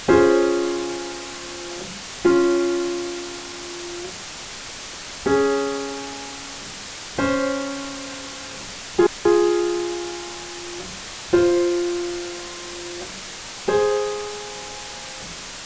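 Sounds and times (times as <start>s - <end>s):
piano: 0.0s - 15.6s.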